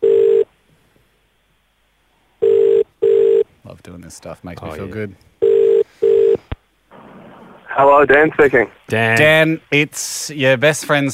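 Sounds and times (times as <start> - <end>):
telephone ringback tone with buzzy electronic rings: 0.0 - 0.5, 2.4 - 3.4, 5.4 - 6.4
speech: 3.8 - 5.4, 7.8 - 11.1.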